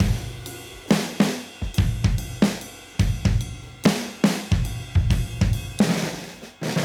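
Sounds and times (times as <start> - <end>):
modern breakbeat music: 0.0 - 6.8.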